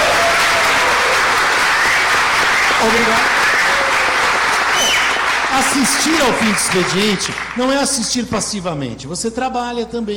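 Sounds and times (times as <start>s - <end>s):
audience applause for a live show's guests: 0.0s - 8.0s
speech: 2.8s - 3.4s, 5.6s - 10.1s.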